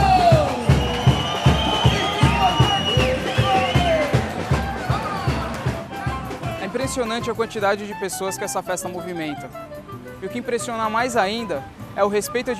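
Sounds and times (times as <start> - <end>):
people shouting: 0.0 - 6.7
crowd cheering and applauding: 0.0 - 7.2
pounding rhythmic beat: 0.0 - 8.7
high whistle-like calls: 0.1 - 6.6
speech: 6.9 - 12.5.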